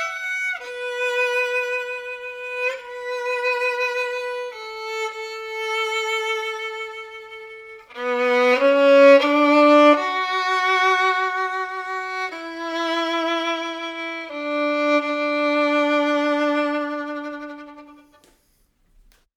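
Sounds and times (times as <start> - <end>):
German violin circa 1900: 0.0 - 18.6.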